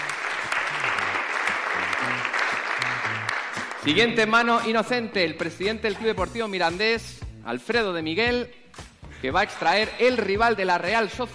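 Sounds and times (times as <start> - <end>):
crowd applause at a football cup draw: 0.0 - 4.0
speech: 3.8 - 8.6, 9.2 - 11.3.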